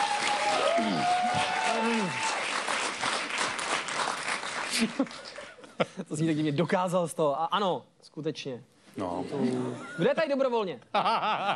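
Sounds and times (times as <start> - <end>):
audience applause: 0.0 - 5.6
speech: 4.8 - 11.5.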